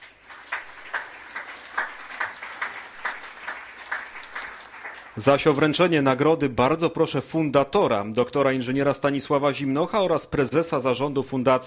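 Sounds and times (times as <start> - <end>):
audience applause: 0.0 - 6.0
speech: 5.2 - 11.6.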